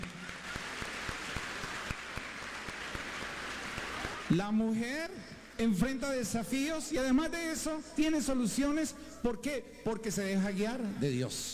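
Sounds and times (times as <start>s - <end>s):
audience applause: 0.0s - 4.4s
speech: 4.3s - 11.5s.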